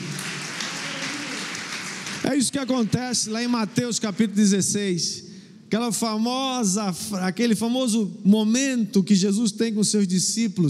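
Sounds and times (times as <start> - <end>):
audience applause: 0.0 - 3.5
speech: 2.2 - 10.6.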